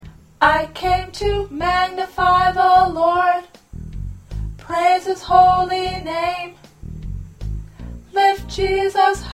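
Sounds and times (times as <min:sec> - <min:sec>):
alto choir part singing: 0:00.4 - 0:03.5, 0:04.6 - 0:06.6, 0:08.1 - 0:09.3.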